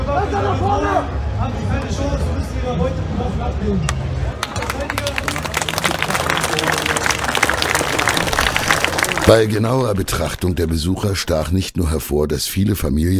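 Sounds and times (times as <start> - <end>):
speech: 0.1 - 4.1, 9.3 - 13.1
spectators applauding loudly: 4.4 - 10.6.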